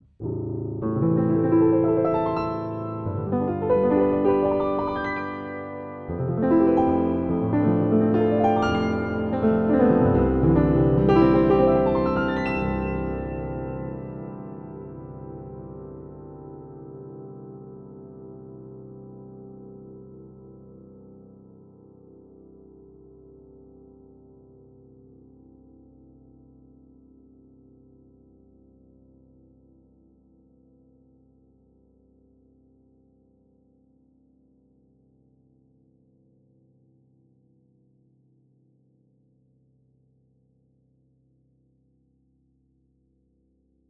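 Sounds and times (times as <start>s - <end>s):
improvised music: 0.2s - 16.1s.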